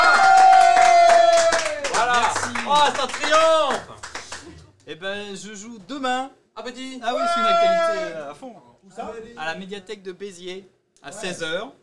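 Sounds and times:
audience applause: 0.0 - 4.6
speech: 2.7 - 11.8.

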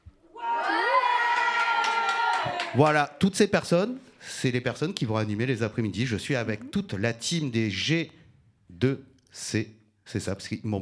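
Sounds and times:
studio audience participants shouting and cheering on cue: 0.3 - 3.2
speech: 2.8 - 10.7.

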